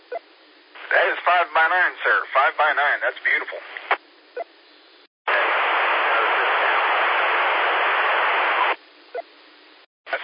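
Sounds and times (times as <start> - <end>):
hissing radio static crackling: 0.7 - 4.0, 4.9 - 8.9, 10.1 - 10.2
speech: 1.0 - 3.7.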